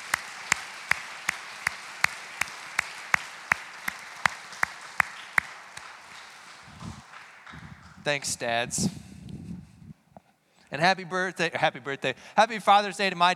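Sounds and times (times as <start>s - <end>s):
audience applause: 0.0s - 8.3s
speech: 8.0s - 9.0s, 10.7s - 13.3s.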